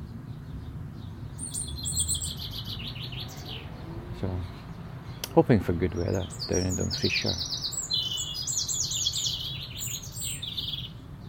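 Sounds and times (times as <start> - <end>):
birdsong: 0.0 - 11.2
speech: 4.2 - 4.6, 5.4 - 7.6.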